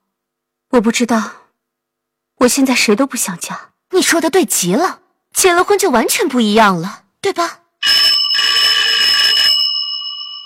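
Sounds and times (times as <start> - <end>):
speech: 0.8 - 1.4, 2.4 - 8.0
telephone ringing: 7.8 - 10.4.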